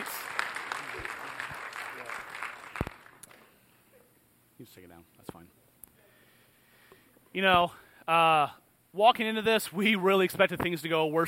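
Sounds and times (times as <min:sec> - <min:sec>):
audience clapping: 0:00.0 - 0:03.6
speech: 0:04.7 - 0:05.6, 0:07.4 - 0:11.2.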